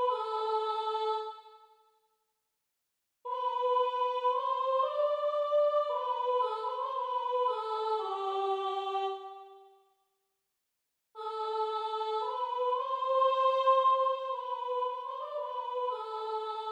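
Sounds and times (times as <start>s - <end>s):
soprano singing: 0.0s - 1.4s, 3.3s - 9.6s, 11.2s - 16.7s.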